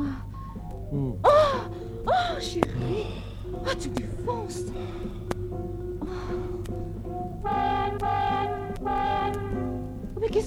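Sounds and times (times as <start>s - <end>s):
speech: 0.9s - 8.1s
car horn honking: 7.4s - 9.8s.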